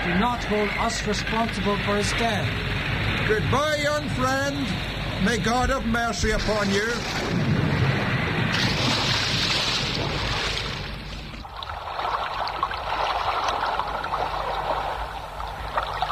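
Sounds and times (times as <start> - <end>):
speech: 0.0 - 7.4
storm at sea: 0.0 - 16.1.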